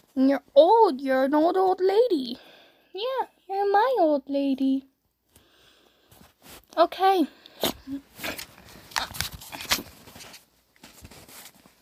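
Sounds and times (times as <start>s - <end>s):
speech: 0.2s - 4.9s, 6.4s - 9.2s
soft shuffling: 6.0s - 7.1s, 7.7s - 11.8s
dog sneezing: 7.5s - 8.3s.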